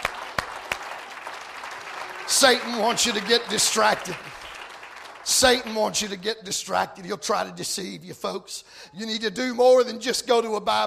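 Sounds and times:
audience clapping: 0:00.0 - 0:06.3
speech: 0:02.3 - 0:04.4, 0:05.3 - 0:10.8.

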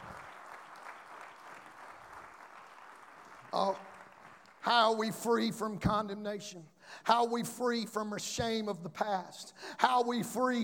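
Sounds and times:
audience clapping: 0:00.0 - 0:05.0
speech: 0:03.5 - 0:03.9, 0:04.6 - 0:10.6.

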